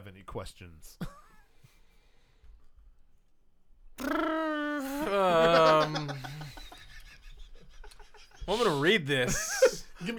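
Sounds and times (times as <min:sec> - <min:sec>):
speech: 0:00.2 - 0:01.1, 0:04.0 - 0:04.2, 0:05.0 - 0:06.4, 0:08.5 - 0:10.1
person imitating a bird call: 0:04.0 - 0:06.1
laughter: 0:04.0 - 0:10.1.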